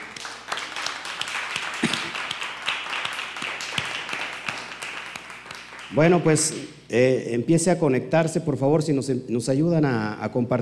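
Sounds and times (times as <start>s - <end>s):
audience clapping: 0.0s - 6.4s
speech: 5.9s - 10.6s.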